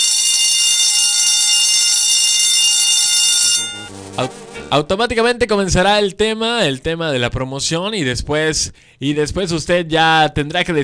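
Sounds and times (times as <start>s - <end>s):
game show buzzer: 0.0s - 4.9s
speech: 4.2s - 10.8s.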